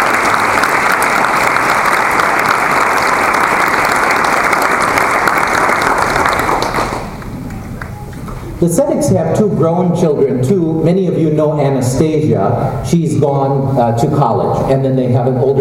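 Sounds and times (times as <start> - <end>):
audience applause: 0.0 - 8.0
speech: 8.6 - 15.5.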